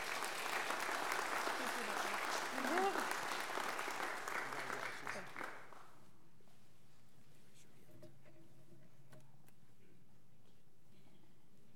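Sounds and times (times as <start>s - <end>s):
audience applause for graduate's family: 0.0s - 5.8s.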